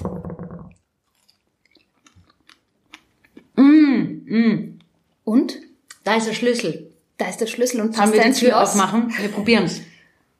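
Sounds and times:
person chewing a strawberry: 0.9 - 3.6
speech: 4.3 - 4.7, 6.2 - 9.9.

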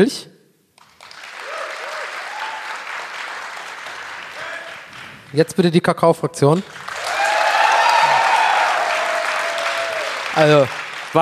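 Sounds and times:
speech: 0.0 - 0.3, 5.3 - 6.9, 10.4 - 11.2
audience applause: 0.8 - 5.8, 6.6 - 11.2.

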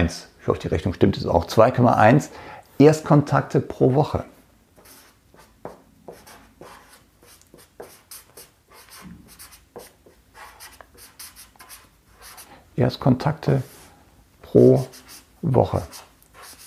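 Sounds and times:
speech: 0.0 - 4.3, 12.8 - 13.8, 14.5 - 16.0
pen scratching on paper: 4.8 - 12.5, 14.6 - 16.6.

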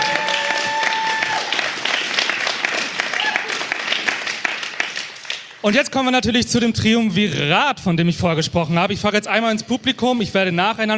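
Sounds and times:
audience applause: 0.0 - 5.6
speech: 5.6 - 10.9.

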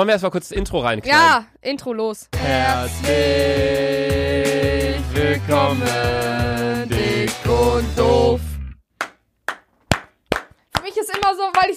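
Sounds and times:
speech: 0.0 - 8.5
hand clapping: 9.0 - 11.7.

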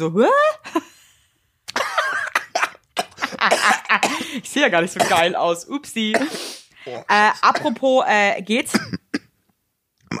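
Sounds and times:
speech: 0.0 - 0.8, 3.4 - 9.0
person coughing after coffee went up the nose: 1.7 - 4.4, 5.0 - 5.4, 6.1 - 7.8, 8.7 - 9.3.

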